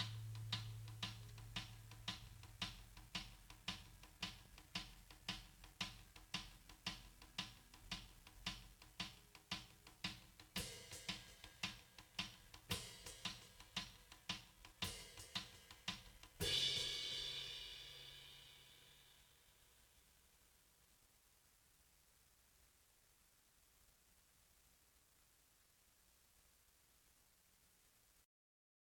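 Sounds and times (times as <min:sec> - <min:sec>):
drums: 0:00.0 - 0:19.8.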